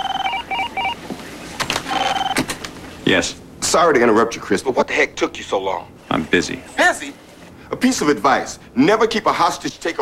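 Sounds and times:
electronic telephone ringing in warbling bursts of paired tones: 0:00.0 - 0:01.0, 0:01.9 - 0:02.5
speech: 0:03.1 - 0:07.2, 0:07.8 - 0:09.9.

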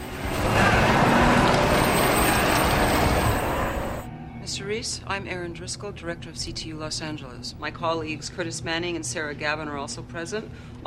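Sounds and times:
car speeding away: 0:00.0 - 0:04.1
speech: 0:04.5 - 0:10.8.

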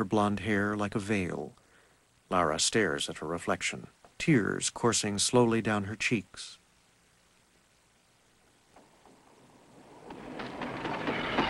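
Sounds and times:
speech: 0:00.0 - 0:01.6, 0:02.3 - 0:06.6
train pulling into a daytime station: 0:09.2 - 0:11.4
train wheels clacking: 0:09.8 - 0:11.4.

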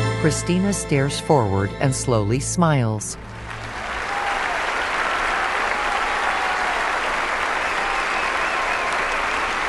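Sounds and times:
speech: 0:00.2 - 0:03.4
one person clapping hands: 0:03.5 - 0:09.6.

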